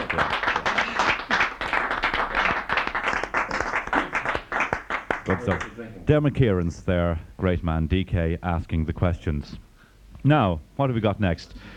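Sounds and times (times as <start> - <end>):
small group applauding: 0.0 - 5.8
speech: 5.3 - 9.6, 10.2 - 11.7.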